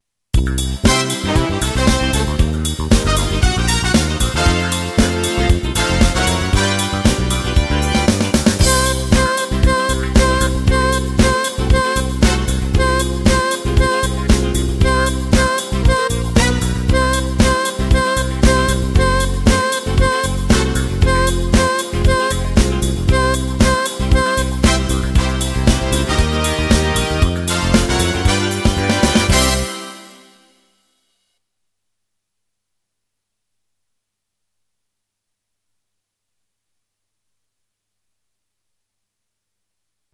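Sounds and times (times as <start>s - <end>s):
trombone: 0.5s - 30.6s
trumpet: 0.7s - 31.1s.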